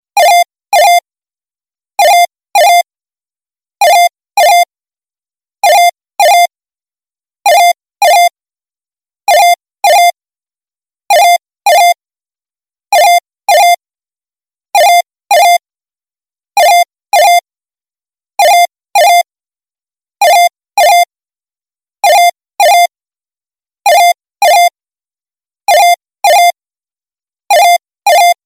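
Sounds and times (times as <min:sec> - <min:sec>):
home phone: 0:00.1 - 0:01.1, 0:02.0 - 0:02.9, 0:03.8 - 0:04.7, 0:05.6 - 0:06.5, 0:07.4 - 0:08.4, 0:09.2 - 0:10.2, 0:11.1 - 0:12.0, 0:12.9 - 0:13.8, 0:14.7 - 0:15.6, 0:16.6 - 0:17.5, 0:18.4 - 0:19.3, 0:20.2 - 0:21.2, 0:22.0 - 0:23.0, 0:23.8 - 0:24.8, 0:25.6 - 0:26.6, 0:27.5 - 0:28.4.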